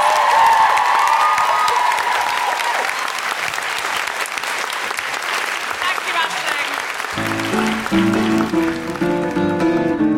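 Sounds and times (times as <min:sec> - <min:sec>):
audience applause: 0:00.0 - 0:10.0.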